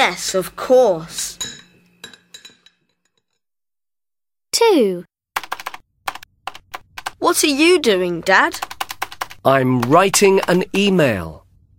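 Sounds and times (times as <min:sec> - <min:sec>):
speech: 0:00.0 - 0:01.5, 0:04.6 - 0:05.1, 0:07.2 - 0:08.7, 0:09.4 - 0:11.4
dishes and cutlery clinking as the table is set for lunch: 0:01.4 - 0:03.4.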